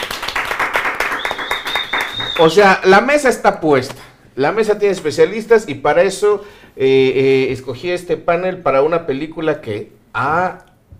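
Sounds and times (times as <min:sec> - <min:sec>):
audience applause: 0:00.0 - 0:02.6
high whistling tone: 0:01.1 - 0:02.6
speech: 0:02.4 - 0:10.7.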